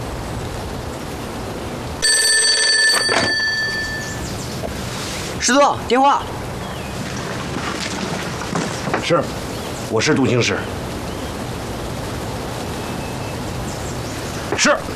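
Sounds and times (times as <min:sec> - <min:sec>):
hiss: 0:00.0 - 0:14.9
old telephone bell ringing: 0:02.0 - 0:04.4
man speaking: 0:09.9 - 0:10.8.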